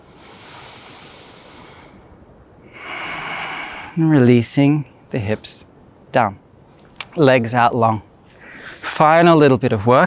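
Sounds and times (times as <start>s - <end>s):
full breaths during a yoga exercise: 0.0s - 4.0s, 8.3s - 8.9s
speech: 4.0s - 6.4s, 7.2s - 8.1s, 9.0s - 10.0s.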